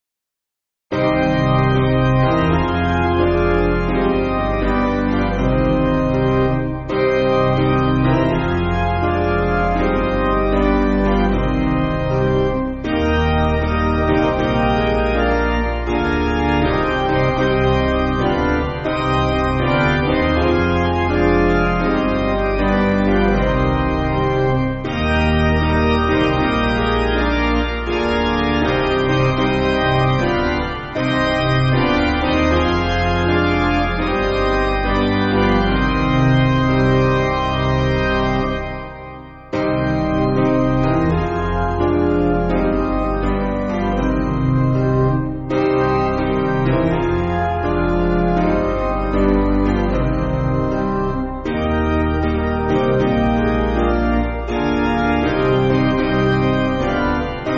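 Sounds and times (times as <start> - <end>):
piano backing music for churches: 0.9 - 57.5.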